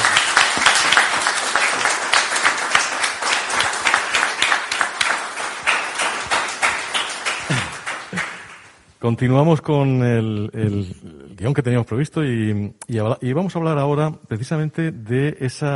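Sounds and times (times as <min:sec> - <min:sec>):
audience applause: 0:00.0 - 0:08.8
speech: 0:09.0 - 0:15.7.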